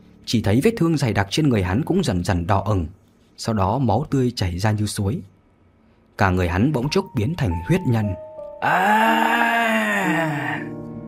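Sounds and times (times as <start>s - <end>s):
speech: 0.3s - 5.3s, 6.2s - 10.8s
strangled hoarse scream of agony: 8.6s - 10.7s.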